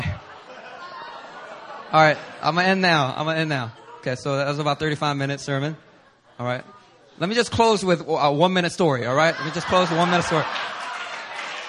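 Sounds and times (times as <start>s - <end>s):
laughter: 0.0s - 2.8s, 9.1s - 11.6s
speech: 1.9s - 10.6s
audience clapping: 9.9s - 11.6s.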